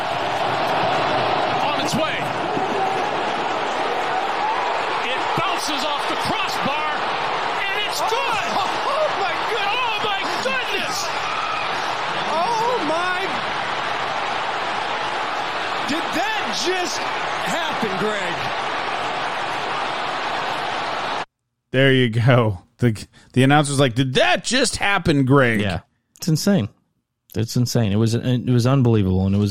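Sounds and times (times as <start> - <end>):
basketball arena crowd roaring and cheering: 0.0 - 21.3
speech: 1.9 - 2.4, 5.6 - 7.2, 8.0 - 9.0, 15.9 - 18.6, 21.7 - 29.4.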